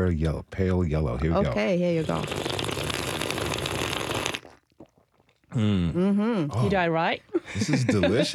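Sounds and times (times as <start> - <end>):
speech: 0.0 - 2.8, 5.6 - 8.3
loud slurping of green tea: 2.0 - 5.0
laughter: 7.3 - 8.3.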